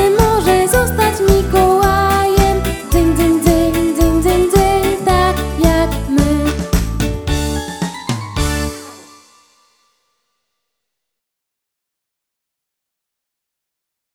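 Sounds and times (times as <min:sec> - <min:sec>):
vocal version of music: 0:00.0 - 0:09.2.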